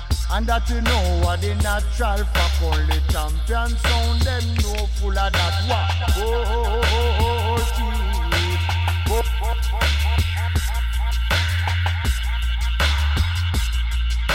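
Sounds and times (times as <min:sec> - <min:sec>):
drum and bass music: 0:00.0 - 0:14.3.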